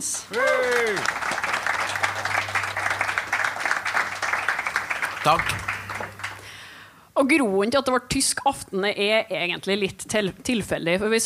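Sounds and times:
speech: 0:00.0 - 0:01.2, 0:05.2 - 0:05.7, 0:07.2 - 0:11.2
audience applause: 0:00.2 - 0:06.6.

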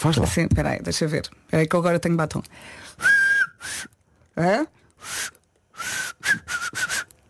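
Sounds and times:
speech: 0:00.0 - 0:07.0
person whistling with four fingers in the mouth: 0:03.0 - 0:04.0, 0:05.0 - 0:07.1.

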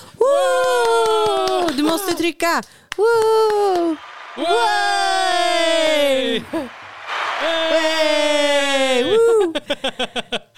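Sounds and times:
person whooping: 0:00.1 - 0:02.2, 0:03.0 - 0:06.8, 0:07.4 - 0:09.6
crowd cheering and applause sound effect: 0:00.4 - 0:02.0, 0:02.9 - 0:09.6
speech: 0:01.9 - 0:05.2, 0:05.9 - 0:06.8, 0:07.4 - 0:10.5
laughter: 0:08.8 - 0:10.5.

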